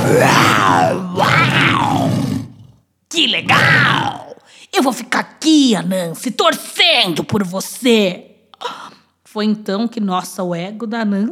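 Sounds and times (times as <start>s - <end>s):
person imitating a lion's roar: 0.0s - 4.4s
speech: 3.2s - 11.3s.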